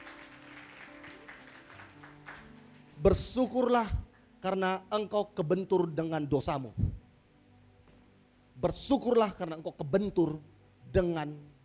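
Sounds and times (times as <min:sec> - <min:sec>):
audience applauding: 0:00.0 - 0:03.2
speech: 0:03.0 - 0:06.8, 0:08.6 - 0:11.5.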